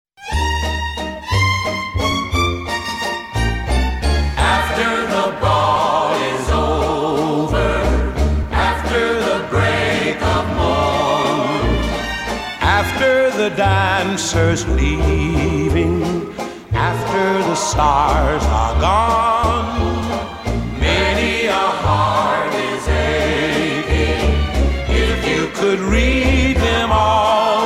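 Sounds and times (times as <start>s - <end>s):
Viennese waltz music: 0.2s - 27.6s.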